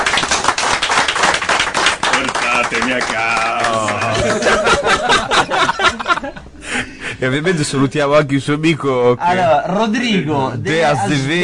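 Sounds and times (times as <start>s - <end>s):
applause: 0.0s - 4.8s
laughter: 2.4s - 7.2s
speech: 2.7s - 11.4s.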